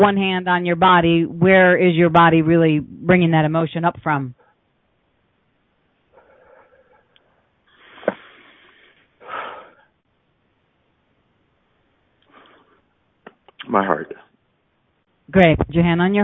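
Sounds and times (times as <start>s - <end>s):
speech: 0.0s - 4.4s, 13.7s - 14.2s, 15.3s - 16.2s
person breathing: 6.1s - 9.9s, 12.2s - 12.9s.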